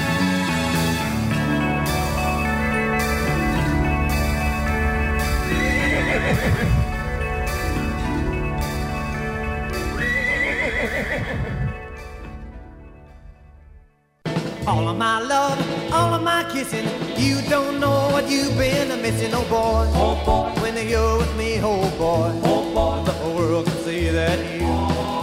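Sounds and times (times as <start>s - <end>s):
steady loud musical backing of a song: 0.0s - 25.2s
horse neighing as Pegasus the flying horse in a song: 5.4s - 7.2s, 9.8s - 12.0s
speech: 16.6s - 20.4s.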